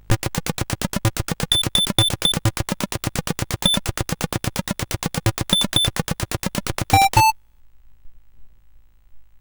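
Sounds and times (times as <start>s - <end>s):
SID chiptune music on a CSG8580R5 chip: 0.1s - 7.3s.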